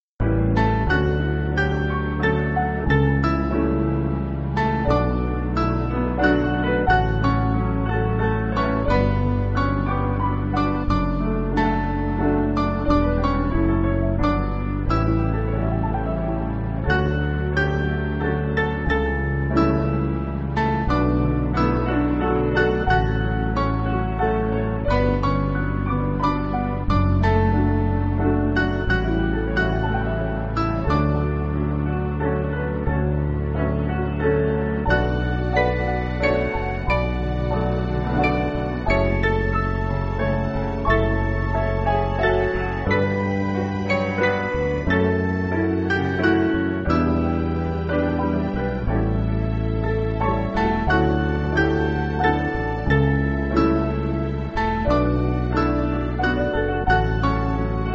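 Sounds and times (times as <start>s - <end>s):
piano: 0.0s - 57.9s.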